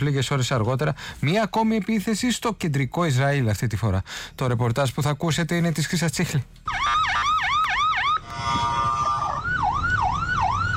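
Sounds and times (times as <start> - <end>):
speech: 0.0 - 7.1
alarm siren in central Israel: 6.7 - 10.7.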